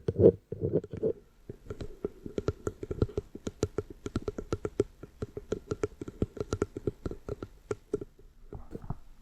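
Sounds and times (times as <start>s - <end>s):
quick sharp tapping: 0.0s - 8.9s.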